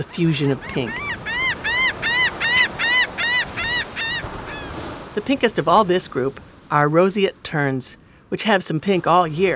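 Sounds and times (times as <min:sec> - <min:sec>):
speech: 0:00.0 - 0:01.1, 0:05.2 - 0:09.5
Laughing Gull calling: 0:00.5 - 0:04.9.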